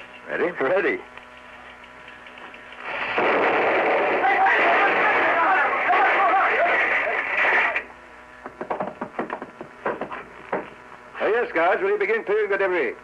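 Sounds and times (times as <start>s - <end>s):
speech: 0.3s - 1.2s, 11.6s - 13.0s
gun fired out of a window exploding: 2.9s - 6.4s
laughter: 4.2s - 7.8s.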